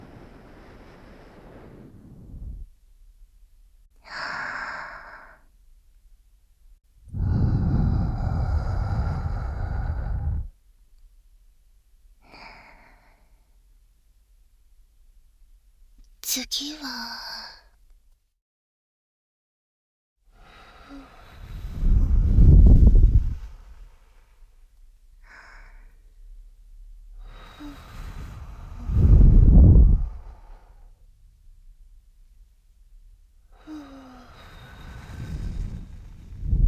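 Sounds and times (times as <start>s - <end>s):
ASMR breath blowing into ear: 0.0s - 2.7s, 7.1s - 10.5s, 20.5s - 24.1s, 27.5s - 30.8s, 33.6s - 36.6s.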